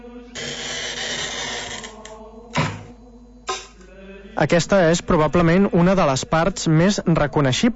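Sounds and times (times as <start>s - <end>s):
glass cutter scoring glass: 0.4s - 2.9s, 3.5s - 3.8s
speech: 4.4s - 7.7s.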